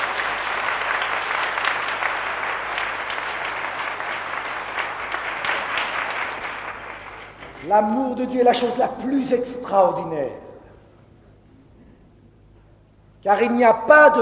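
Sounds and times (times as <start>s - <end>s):
loud audience applause: 0.0s - 7.6s
speech: 7.7s - 10.5s, 13.2s - 14.1s.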